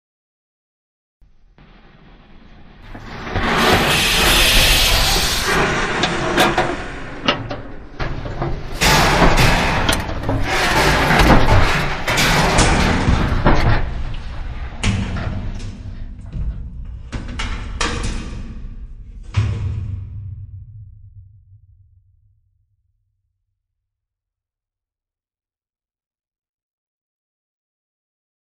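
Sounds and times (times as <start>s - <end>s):
heavy mechanical doors: 1.7s - 19.6s.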